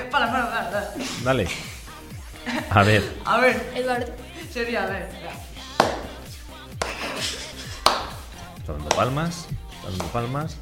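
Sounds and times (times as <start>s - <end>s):
speech: 0.1s - 1.8s, 2.5s - 5.4s, 8.7s - 10.6s
laughter: 0.3s - 4.5s, 6.8s - 8.3s
hand claps in a steady rhythm: 5.6s - 10.3s.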